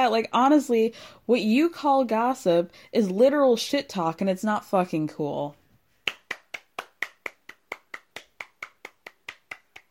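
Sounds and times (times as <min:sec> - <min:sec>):
speech: 0:00.0 - 0:05.6
hands clapping: 0:06.0 - 0:09.8.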